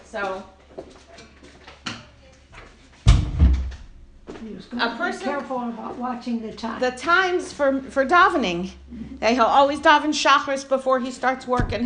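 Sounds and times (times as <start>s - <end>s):
speech: 0.1s - 1.0s, 4.4s - 11.8s
door being closed: 3.1s - 4.0s.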